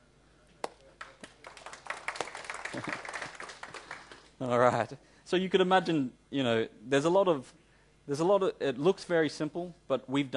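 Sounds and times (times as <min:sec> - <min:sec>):
slow clapping: 0:00.6 - 0:04.4
speech: 0:02.7 - 0:03.0, 0:04.4 - 0:10.3.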